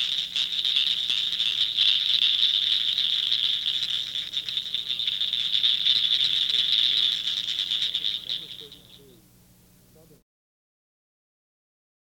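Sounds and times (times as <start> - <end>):
cricket frog clicking call in Texas: 0.0 - 9.2.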